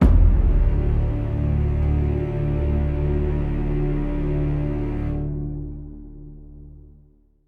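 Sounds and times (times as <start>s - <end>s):
tense music sting: 0.0s - 5.8s.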